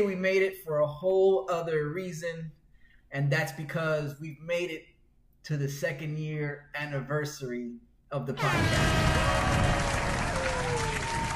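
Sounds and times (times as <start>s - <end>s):
speech: 0.0s - 9.6s
applause sound effect: 8.6s - 11.3s.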